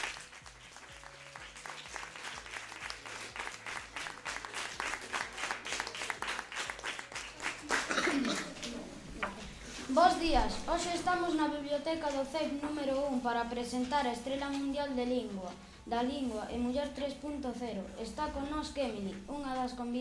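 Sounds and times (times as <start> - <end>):
audience applause: 0.0 - 8.7
speech: 10.0 - 19.9.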